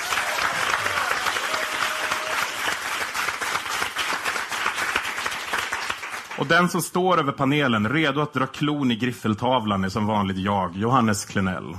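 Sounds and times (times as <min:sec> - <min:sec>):
warm applause: 0:00.0 - 0:06.9
speech: 0:06.4 - 0:11.7.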